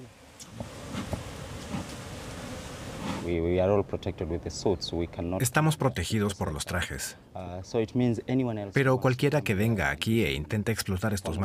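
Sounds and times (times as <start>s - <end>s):
honeybees buzzing around beekeepers' hives: 0.1s - 3.3s
speech: 3.3s - 11.4s.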